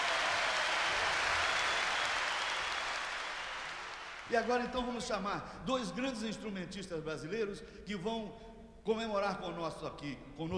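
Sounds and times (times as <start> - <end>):
audience applause: 0.0 - 4.6
speech: 4.3 - 10.5.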